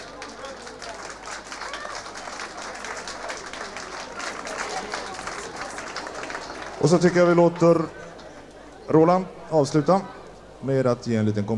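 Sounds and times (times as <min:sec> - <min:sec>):
audience applause: 0:00.0 - 0:08.6
speech: 0:06.8 - 0:08.0, 0:08.9 - 0:11.5.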